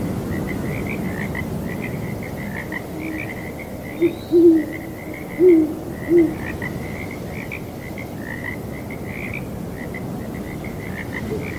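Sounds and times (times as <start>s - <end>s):
frogs croaking: 0.0s - 11.5s
owl hooting: 4.0s - 6.4s, 11.2s - 11.5s.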